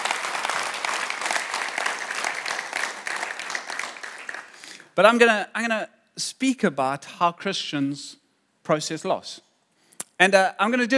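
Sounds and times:
audience applause: 0:00.0 - 0:04.9
speech: 0:05.0 - 0:09.5, 0:10.2 - 0:10.9.

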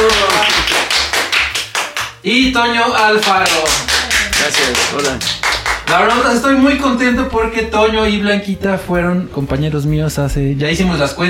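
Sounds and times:
audience applause: 0:00.0 - 0:02.1, 0:03.2 - 0:06.2
speech: 0:02.2 - 0:11.2.

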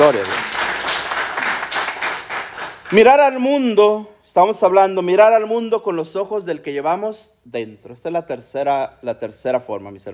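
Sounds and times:
audience applause: 0:00.0 - 0:03.0
speech: 0:00.1 - 0:00.5, 0:02.9 - 0:10.1.

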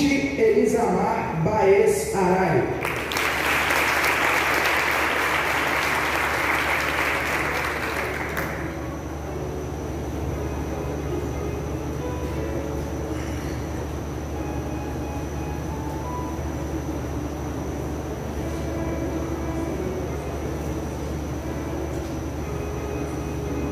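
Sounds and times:
steady low hum: 0:00.0 - 0:23.7
speech: 0:00.8 - 0:02.9
crowd applause: 0:02.8 - 0:08.9.

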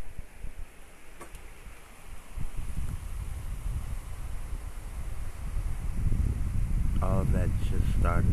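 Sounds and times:
heavy summer rain pouring down: 0:01.3 - 0:07.0
speech: 0:07.2 - 0:08.3.

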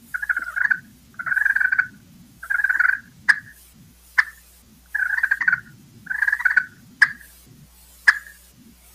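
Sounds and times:
soft turkey hen purr call: 0:00.1 - 0:03.6, 0:04.2 - 0:07.4, 0:08.0 - 0:08.4.

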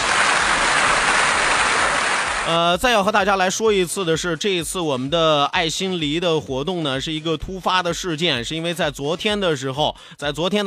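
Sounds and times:
applause: 0:00.0 - 0:02.6
speech: 0:02.5 - 0:10.6.

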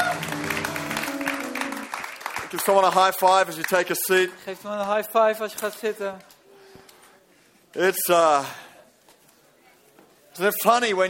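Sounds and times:
audience applauding the band: 0:00.0 - 0:05.8
speech: 0:02.5 - 0:06.3, 0:07.7 - 0:08.6, 0:10.4 - 0:11.0.

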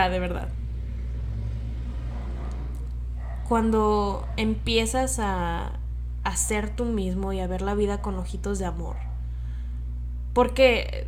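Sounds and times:
speech: 0:00.0 - 0:00.6, 0:03.5 - 0:09.1, 0:10.4 - 0:11.0
motorcycle engine passing by: 0:00.0 - 0:05.8.

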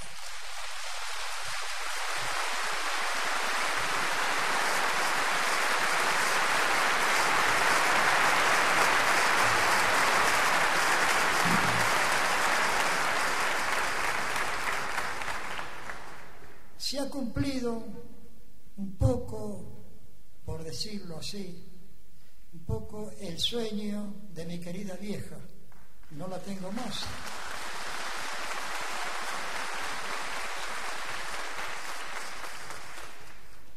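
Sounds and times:
audience applause: 0:00.0 - 0:16.6, 0:26.8 - 0:33.7
speech: 0:17.1 - 0:18.0, 0:19.0 - 0:19.7, 0:20.5 - 0:21.7, 0:22.5 - 0:25.5, 0:26.1 - 0:27.3.

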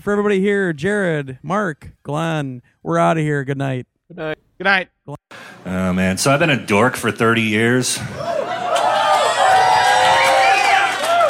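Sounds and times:
speech: 0:00.0 - 0:08.6
audience cheering: 0:08.0 - 0:11.2.

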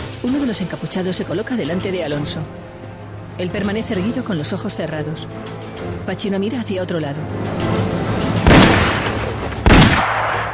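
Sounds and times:
speech: 0:00.2 - 0:02.8, 0:03.4 - 0:08.2
gunshots: 0:08.4 - 0:10.5.

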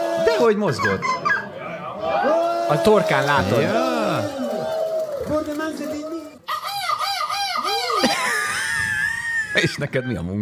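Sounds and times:
speech: 0:00.4 - 0:01.3, 0:02.2 - 0:04.3, 0:05.3 - 0:06.1, 0:09.6 - 0:10.3
laughter: 0:01.4 - 0:06.3, 0:07.6 - 0:10.3
person imitating a rooster call: 0:02.1 - 0:05.2, 0:06.5 - 0:08.3.

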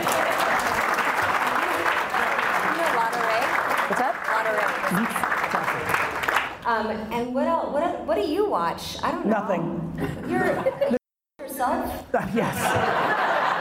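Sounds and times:
audience clapping: 0:00.0 - 0:06.7
laughter: 0:04.8 - 0:05.8, 0:10.0 - 0:11.0, 0:12.2 - 0:13.5
speech: 0:06.8 - 0:11.0, 0:11.6 - 0:13.1.

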